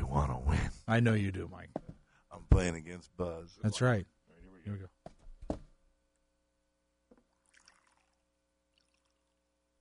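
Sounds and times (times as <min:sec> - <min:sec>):
speech: 0:00.9 - 0:01.8, 0:02.6 - 0:05.6
water pouring from bottle into shot glass: 0:07.1 - 0:09.4.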